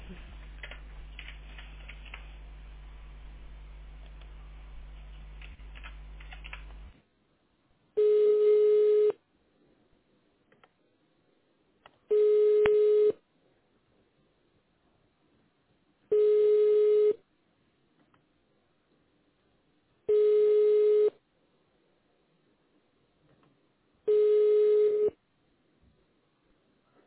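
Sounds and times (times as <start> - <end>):
dense block of steady noise: 0.0 - 7.0
ringback tone of an unanswered transferred phone call: 8.0 - 9.2, 12.1 - 13.2, 16.1 - 17.2, 20.1 - 21.2, 24.1 - 25.2.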